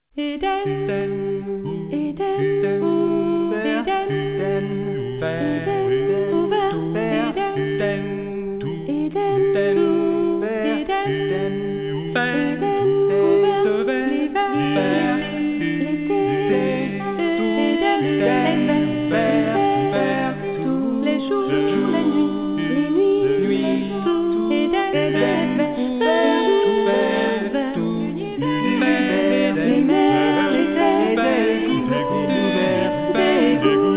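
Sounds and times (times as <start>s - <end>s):
vocals: 0.0s - 33.9s.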